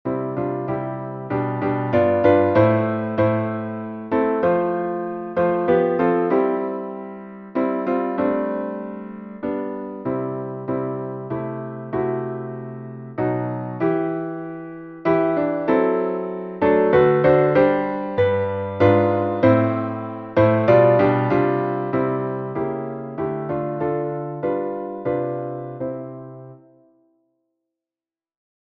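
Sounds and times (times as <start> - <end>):
piano piece: 0.0 - 27.2.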